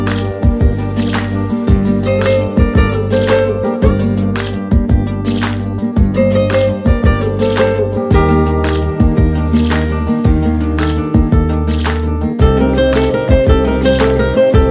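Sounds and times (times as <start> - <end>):
cinematic guitar: 0.0 - 14.6.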